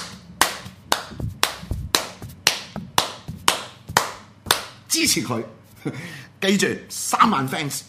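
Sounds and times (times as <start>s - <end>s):
hands clapping: 0.0s - 4.8s
speech: 5.0s - 7.8s.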